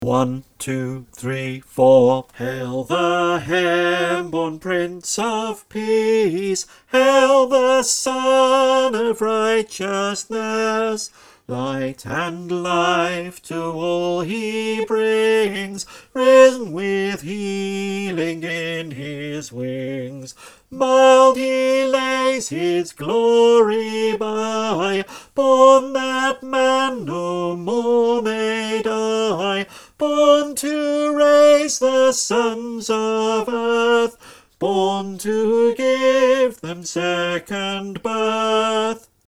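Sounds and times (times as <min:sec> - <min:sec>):
choir singing in unison: 0:00.0 - 0:39.1.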